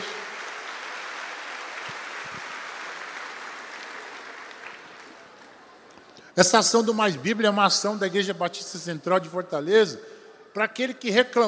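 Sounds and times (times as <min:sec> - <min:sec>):
audience applauding: 0:00.0 - 0:05.9
speech: 0:06.4 - 0:11.4.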